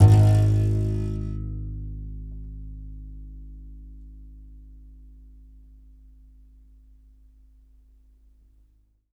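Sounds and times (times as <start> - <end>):
contrabass balalaika plucked strings: 0.0 - 3.8.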